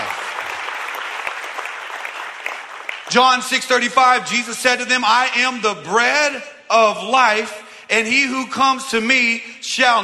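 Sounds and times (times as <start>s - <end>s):
applause: 0.0s - 4.2s
speech: 3.1s - 10.0s.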